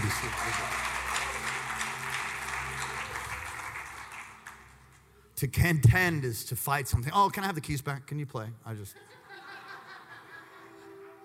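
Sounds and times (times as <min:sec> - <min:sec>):
audience clapping hands: 0:00.0 - 0:05.2
speech: 0:05.4 - 0:09.2
laughter: 0:08.9 - 0:11.2.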